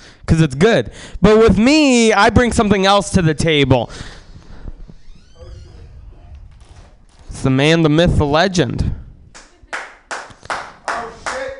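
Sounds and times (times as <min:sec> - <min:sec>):
speech: 0:00.3 - 0:04.2, 0:07.4 - 0:09.0
audience clapping: 0:09.3 - 0:11.5.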